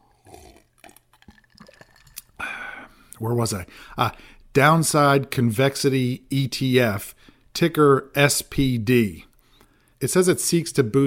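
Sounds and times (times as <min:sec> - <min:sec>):
person sipping and swallowing drinking water: 0:00.0 - 0:03.2
speech: 0:03.2 - 0:09.3, 0:10.0 - 0:11.0.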